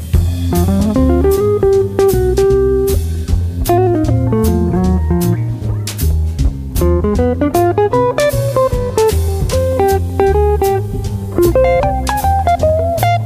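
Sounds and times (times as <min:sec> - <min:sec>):
jazz quartet playing: 0:00.2 - 0:13.2.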